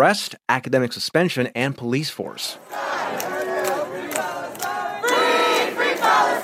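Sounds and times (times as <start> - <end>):
speech: 0.0 - 3.3
student protesters chanting on Columbia University's campus: 2.5 - 6.4.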